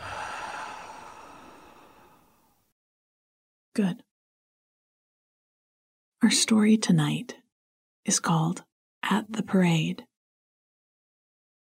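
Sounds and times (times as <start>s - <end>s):
soft exhale during a guided breathing exercise: 0.0s - 2.6s
speech: 3.8s - 4.1s, 6.2s - 7.4s, 8.0s - 10.1s.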